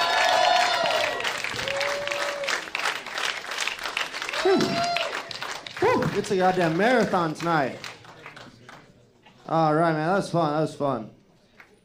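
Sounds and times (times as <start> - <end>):
roast battle audience in Chicago cheering and whistling: 0.0 - 2.7
roast battle audience in Chicago applauding: 0.0 - 8.9
speech: 6.2 - 7.9, 9.5 - 11.2.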